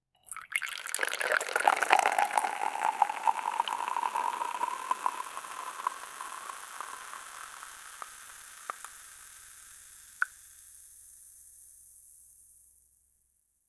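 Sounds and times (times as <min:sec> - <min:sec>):
hot coffee pouring: 0:00.2 - 0:08.9.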